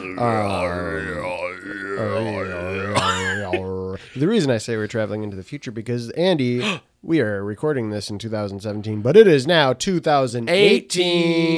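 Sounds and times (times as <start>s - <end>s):
person imitating Tibetan monk throat singing: 0.0s - 4.2s
speech: 0.2s - 3.1s, 4.2s - 11.5s.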